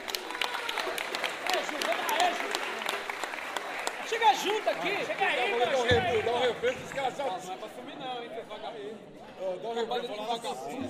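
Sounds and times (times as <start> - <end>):
audience applause: 0.0 - 7.2
speech: 4.2 - 10.8.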